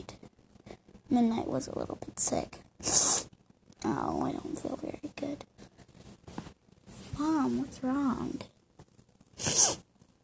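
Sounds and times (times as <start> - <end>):
speech: 1.1 - 3.0, 3.8 - 5.7, 7.2 - 8.5
sneeze: 9.4 - 9.8.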